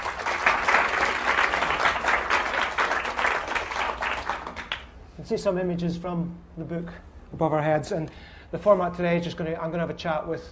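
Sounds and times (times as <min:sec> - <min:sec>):
audience applause at the Edinburgh International Book Festival: 0:00.0 - 0:04.9
speech: 0:05.3 - 0:10.5.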